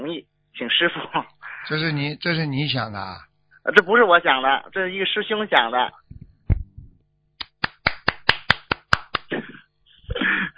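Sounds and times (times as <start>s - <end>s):
speech: 0.0s - 6.0s
group applause: 7.4s - 9.4s
sharp claps: 7.4s - 9.4s.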